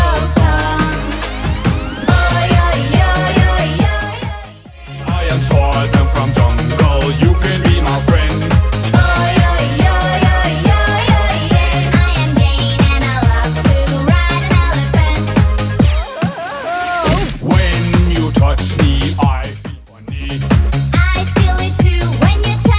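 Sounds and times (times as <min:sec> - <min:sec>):
90s Redrum drum machine loop: 0:00.0 - 0:22.7.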